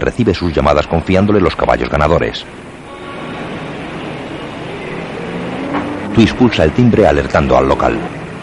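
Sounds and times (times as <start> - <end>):
speech: 0.0 - 2.7, 6.2 - 8.2
road rumble: 0.0 - 8.4
car engine pulling up in front of a café: 2.4 - 8.4.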